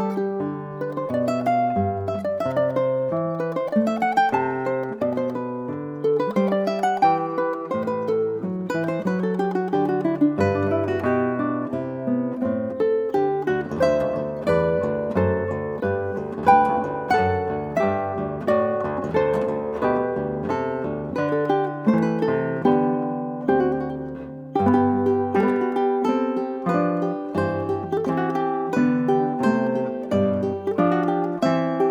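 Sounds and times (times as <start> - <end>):
guitar: 0.0 - 31.9
ukulele: 0.0 - 31.9.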